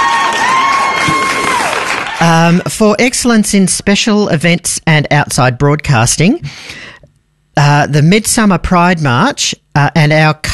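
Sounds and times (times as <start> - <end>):
recorded applause and cheering from a soundboard button: 0.0 - 2.7
speech: 2.2 - 6.9, 7.6 - 10.5.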